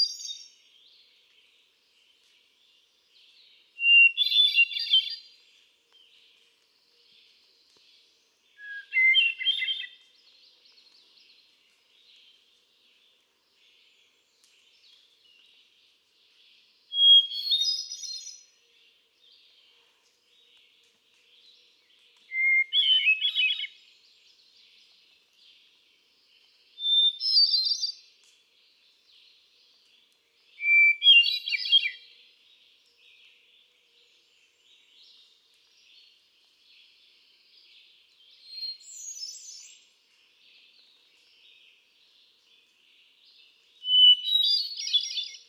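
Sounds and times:
hermit thrush fluty whistled song: 0.0s - 0.9s, 3.8s - 5.3s, 8.5s - 10.2s, 16.9s - 18.6s, 22.2s - 25.0s, 26.7s - 28.1s, 30.4s - 32.2s, 37.6s - 39.9s, 43.2s - 45.4s
faint other birds: 0.0s - 45.4s.

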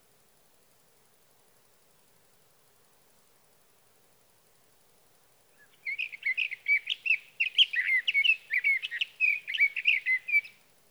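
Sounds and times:
sage thrasher song: 5.6s - 10.6s.

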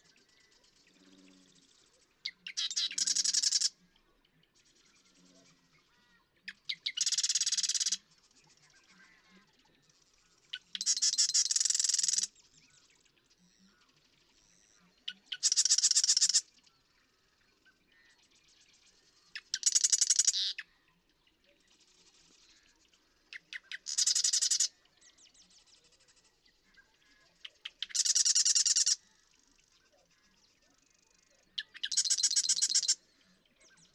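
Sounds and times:
Marsh Wren ticks and chatter: 0.0s - 33.9s
Marsh Wren rattling reeling song: 2.4s - 3.7s, 6.6s - 8.0s, 10.5s - 12.3s, 15.3s - 16.4s, 19.4s - 20.6s, 23.3s - 24.7s, 27.5s - 29.0s, 30.8s - 33.0s.

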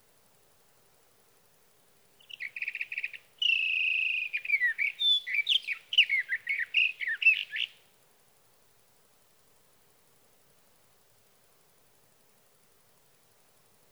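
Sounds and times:
Sage thrasher singing: 2.2s - 7.8s.

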